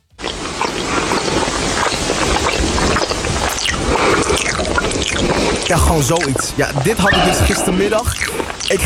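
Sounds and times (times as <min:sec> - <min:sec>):
loud wet smacking and crunchy chewing of popcorn: 0:00.2 - 0:06.8
speech: 0:05.7 - 0:08.8.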